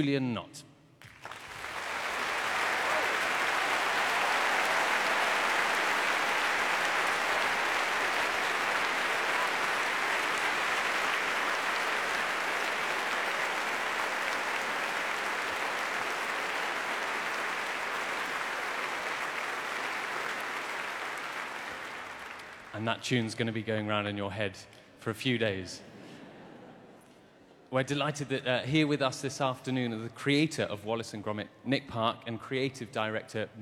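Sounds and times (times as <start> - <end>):
speech: 0.0 - 0.7, 22.8 - 25.9, 27.7 - 33.6
audience applause: 1.0 - 22.8.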